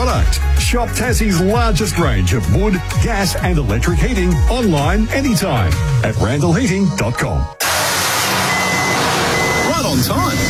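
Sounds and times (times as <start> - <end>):
speech: 0.0 - 7.6, 10.0 - 10.4
firewood delivery truck reversing beeps: 7.8 - 10.4.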